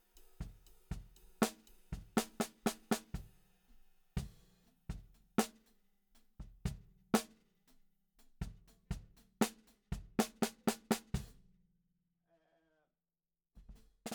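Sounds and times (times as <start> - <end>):
snare drum: 0.0 - 3.5, 4.2 - 5.7, 6.4 - 7.4, 8.4 - 11.4, 13.6 - 14.1.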